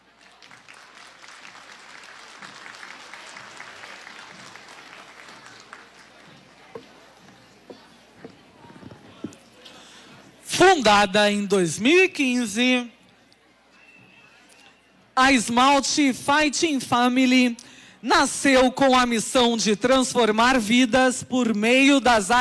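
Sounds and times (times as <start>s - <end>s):
audience applause: 0.0s - 6.5s
speech: 10.6s - 13.0s, 15.2s - 22.4s.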